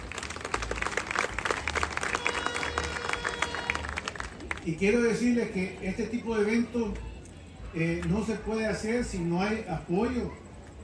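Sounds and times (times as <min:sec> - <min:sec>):
audience applause: 0:00.0 - 0:05.1
speech: 0:04.7 - 0:07.1, 0:07.7 - 0:10.4.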